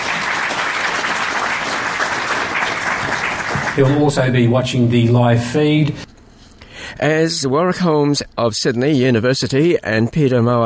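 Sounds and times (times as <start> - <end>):
crowd applause: 0.0 - 4.3
speech: 3.8 - 6.1, 7.0 - 10.6.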